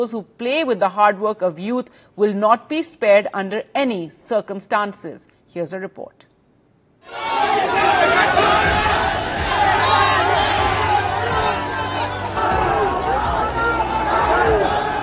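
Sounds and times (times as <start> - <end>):
speech: 0.0 - 6.3
crowd of police constable exam aspirants cheering and shouting: 7.1 - 15.0
excited chatter: 7.1 - 15.0.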